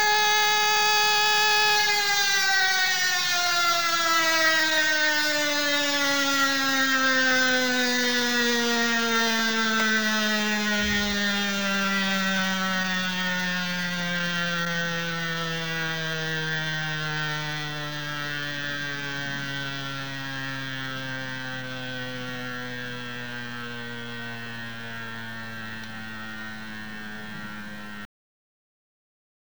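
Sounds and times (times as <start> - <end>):
general warning siren: 0.0 - 28.1.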